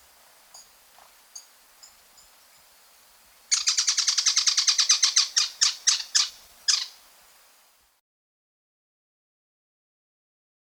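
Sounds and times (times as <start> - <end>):
Slaty-capped flycatcher Leptopogon superciliaris calling in the Andes: 0.0 - 7.8.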